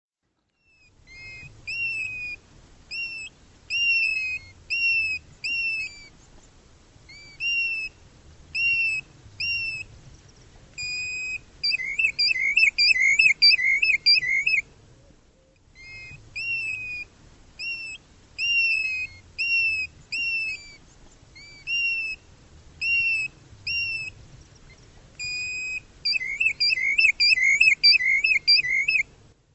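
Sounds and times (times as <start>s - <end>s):
bird whistling: 0.6s - 6.1s, 7.1s - 8.0s, 8.6s - 9.9s, 10.8s - 14.7s, 15.8s - 20.8s, 21.4s - 22.2s, 22.8s - 24.2s, 25.2s - 29.1s.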